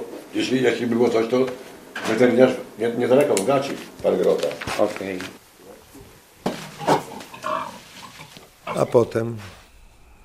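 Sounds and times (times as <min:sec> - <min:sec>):
speech: 0:00.4 - 0:05.4, 0:08.8 - 0:09.6
pigs grunting on a farm: 0:06.6 - 0:09.7.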